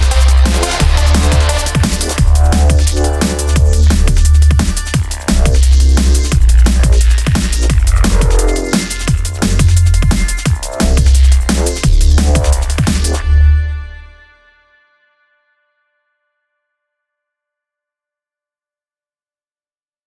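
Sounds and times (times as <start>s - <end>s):
rave music: 0.0s - 14.5s.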